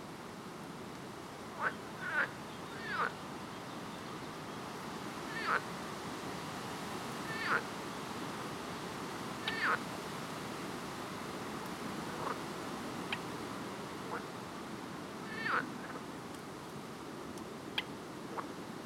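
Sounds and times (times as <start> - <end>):
steady background hiss: 0.0 - 18.8
speech: 1.6 - 1.9
frogs chirping: 1.6 - 3.2, 5.3 - 5.7, 7.2 - 7.7, 9.4 - 9.8, 13.0 - 13.3, 15.2 - 16.0.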